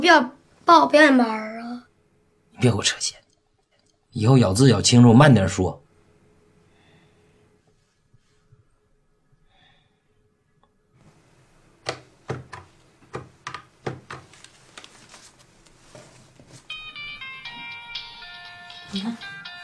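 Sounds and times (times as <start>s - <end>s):
speech: 0.0s - 1.5s, 2.6s - 3.2s, 4.1s - 5.8s
telephone ringing: 16.7s - 19.6s.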